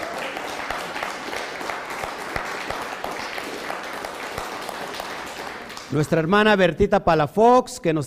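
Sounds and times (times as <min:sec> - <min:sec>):
audience applause: 0:00.0 - 0:06.1
speech: 0:05.9 - 0:08.0.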